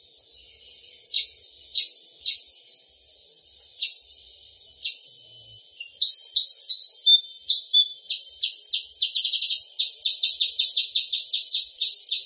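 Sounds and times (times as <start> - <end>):
sooty-headed bulbul calling in fast runs of high chirping notes: 1.1 - 2.5, 5.8 - 12.2.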